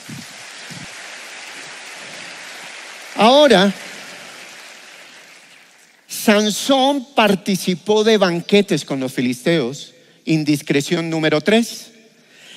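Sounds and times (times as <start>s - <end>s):
audience applause: 0.0s - 5.8s
speech: 3.2s - 3.8s, 6.3s - 12.0s.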